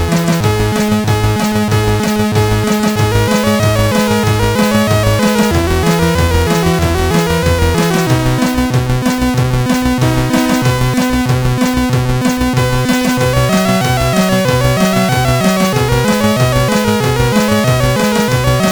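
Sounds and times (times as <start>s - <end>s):
melody on SID CSG8580R5 sound chip: 0.0s - 18.7s.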